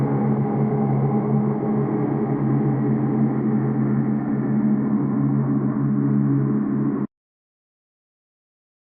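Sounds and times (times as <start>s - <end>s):
rabbit ambience: 0.0s - 7.1s.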